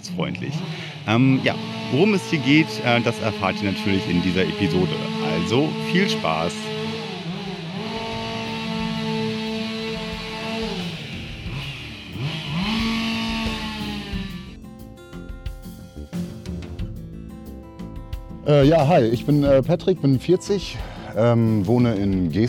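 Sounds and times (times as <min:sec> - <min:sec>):
speech: 0:00.0 - 0:06.8, 0:18.5 - 0:22.4
chainsaw engine revving and cutting wood: 0:00.2 - 0:14.6.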